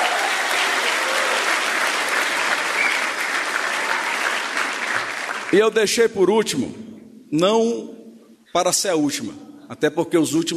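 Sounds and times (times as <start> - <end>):
audience applause: 0.0 - 5.8
speech: 5.5 - 10.5.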